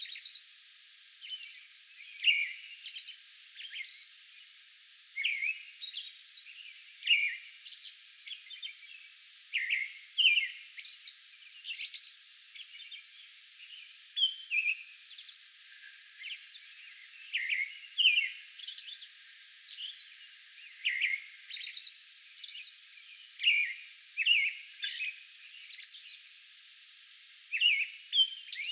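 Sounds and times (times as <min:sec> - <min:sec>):
faint background hiss: 0:00.0 - 0:28.7
American robin singing: 0:01.2 - 0:04.1, 0:05.2 - 0:15.4, 0:16.2 - 0:26.2, 0:27.5 - 0:28.7.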